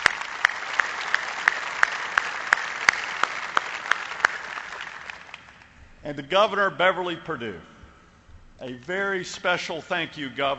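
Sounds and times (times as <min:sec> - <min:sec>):
audience applause: 0:00.0 - 0:05.6
speech: 0:06.0 - 0:07.7, 0:08.6 - 0:10.5.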